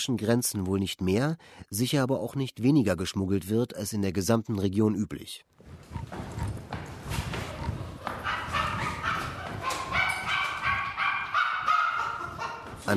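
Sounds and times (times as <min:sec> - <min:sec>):
speech: 0:00.0 - 0:06.2
clattering background of knocks and rustling: 0:05.6 - 0:11.3
dog barking in a rundown Soviet-era three-room apartment: 0:07.3 - 0:12.8.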